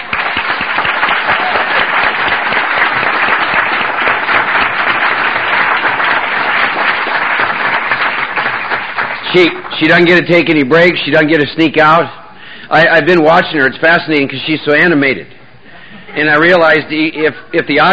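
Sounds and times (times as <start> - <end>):
audience applause: 0.0 - 10.0
speech: 9.3 - 15.4, 16.2 - 17.9.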